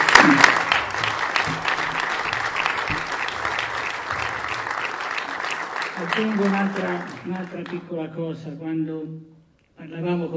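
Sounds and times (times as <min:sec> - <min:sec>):
audience applause: 0:00.0 - 0:07.8
speech: 0:06.2 - 0:10.3.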